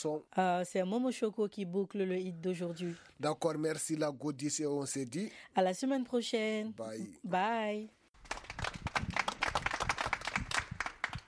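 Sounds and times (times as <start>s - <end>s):
speech: 0.0s - 8.4s
applause: 8.2s - 11.2s.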